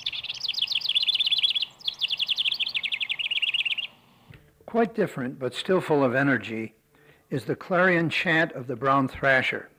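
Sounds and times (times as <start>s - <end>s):
house wren song: 0.0s - 4.1s
speech: 4.7s - 9.7s.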